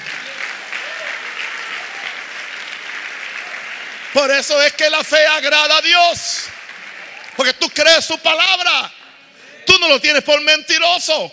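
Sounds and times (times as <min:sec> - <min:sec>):
audience applause: 0:00.0 - 0:07.6
speech: 0:04.1 - 0:06.6, 0:07.4 - 0:09.0, 0:09.8 - 0:11.3.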